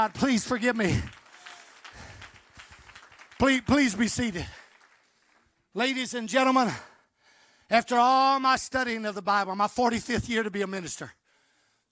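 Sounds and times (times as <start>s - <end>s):
speech: 0.0s - 1.2s, 3.4s - 4.6s, 5.8s - 6.9s, 7.7s - 11.2s
audience clapping hands: 0.0s - 6.6s.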